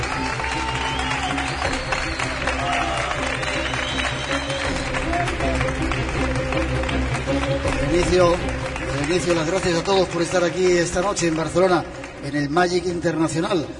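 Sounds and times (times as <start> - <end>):
cheering: 0.0 - 6.2
crowd applauding: 0.0 - 13.7
speech: 9.1 - 13.7.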